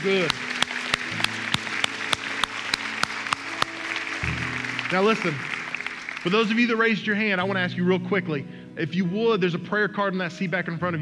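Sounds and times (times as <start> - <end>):
speech: 0.0 - 0.5, 4.9 - 5.5, 6.2 - 11.0
sharp evenly spaced claps: 0.2 - 6.4
audience applause: 0.3 - 6.6.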